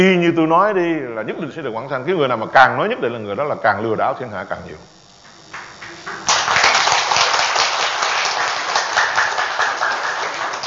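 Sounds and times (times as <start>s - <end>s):
speech: 0.0s - 5.0s
audience applause: 5.5s - 10.6s.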